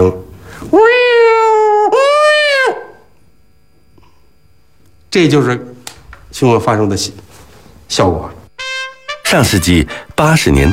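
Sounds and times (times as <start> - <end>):
speech: 0.1 - 1.0, 5.2 - 5.7, 6.3 - 7.3, 7.9 - 8.4, 9.3 - 10.7
vocal imitation of two cats fighting: 0.6 - 3.1.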